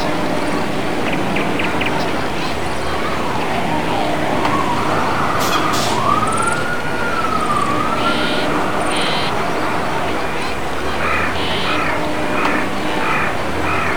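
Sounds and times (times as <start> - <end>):
city ambience: 0.0 - 13.9.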